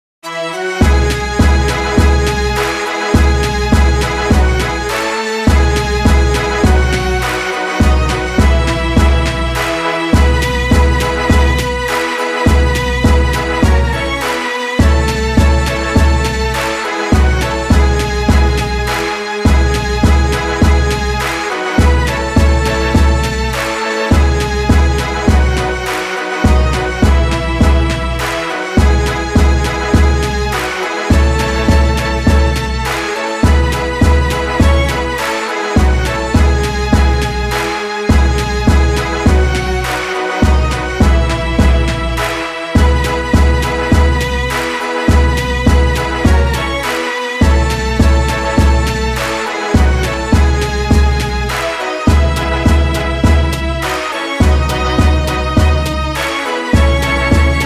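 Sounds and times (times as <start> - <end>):
national anthem: 0.3 - 57.6.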